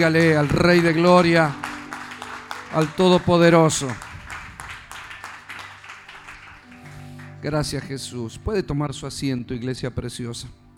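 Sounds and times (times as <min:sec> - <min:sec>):
speech: 0:00.0 - 0:01.7, 0:02.7 - 0:04.1, 0:07.4 - 0:10.6
sustained low musical tones: 0:00.0 - 0:04.8, 0:06.5 - 0:10.7
audience applause: 0:00.0 - 0:08.1.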